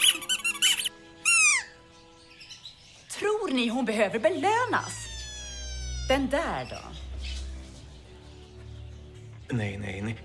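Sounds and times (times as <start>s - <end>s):
squeaky dog chew toy: 0.0s - 1.8s, 4.9s - 6.2s
speech: 3.5s - 5.0s, 6.1s - 7.0s, 9.5s - 10.2s.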